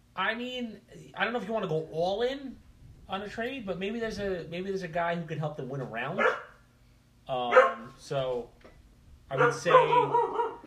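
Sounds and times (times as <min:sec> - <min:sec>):
speech: 0:00.2 - 0:06.5, 0:07.3 - 0:08.6, 0:09.3 - 0:10.4
dog barking: 0:06.2 - 0:06.6, 0:07.5 - 0:07.9, 0:09.3 - 0:10.6.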